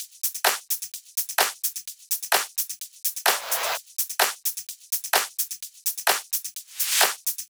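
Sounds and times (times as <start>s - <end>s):
drums: 0.0s - 7.4s.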